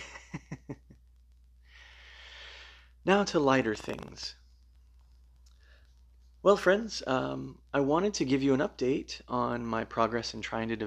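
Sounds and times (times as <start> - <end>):
deep breath in and out: 1.6 - 3.0
speech: 3.1 - 4.4, 6.4 - 10.8.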